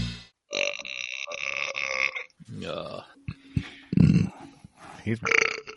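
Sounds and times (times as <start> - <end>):
burp: 0.5 - 4.6, 5.2 - 5.7
voices: 2.5 - 5.5.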